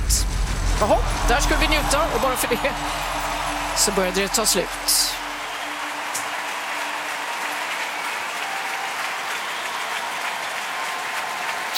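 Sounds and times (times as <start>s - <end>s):
large arena crowd applauding: 0.5s - 11.7s
speech: 0.8s - 5.2s.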